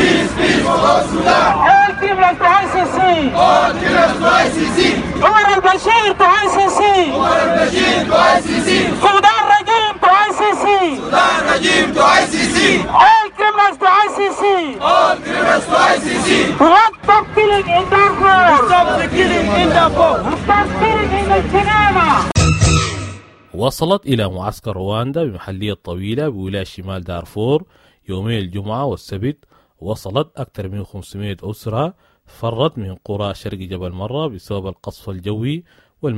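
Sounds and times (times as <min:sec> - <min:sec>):
protesters chanting slogans at a London demonstration: 0:00.0 - 0:05.7, 0:06.3 - 0:22.4
speech: 0:11.2 - 0:22.3, 0:23.6 - 0:36.1.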